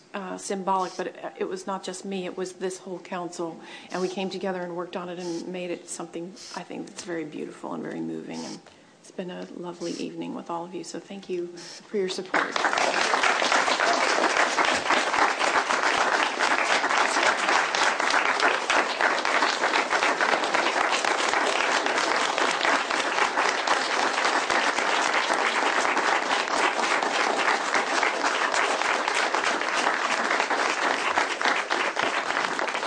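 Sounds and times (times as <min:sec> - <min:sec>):
speech: 0:00.1 - 0:13.2
audience applause: 0:12.3 - 0:32.8.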